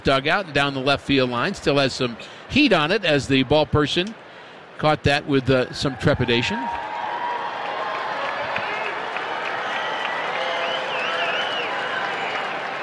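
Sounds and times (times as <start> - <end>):
speech: 0.0 - 4.2, 4.8 - 6.9
modest crowd applauding at a ballpark: 5.9 - 12.8
whistles: 9.4 - 12.8.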